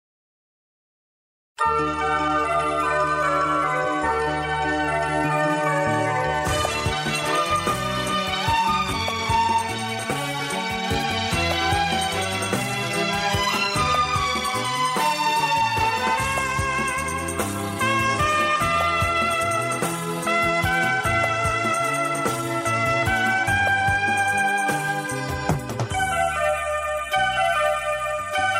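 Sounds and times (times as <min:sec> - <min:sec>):
Christian devotional karaoke music: 0:01.6 - 0:28.5.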